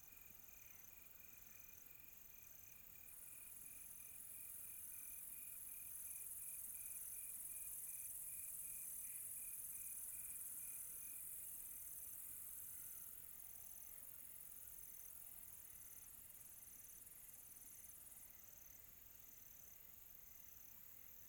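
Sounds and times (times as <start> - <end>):
cricket chirping: 0.0 - 21.2.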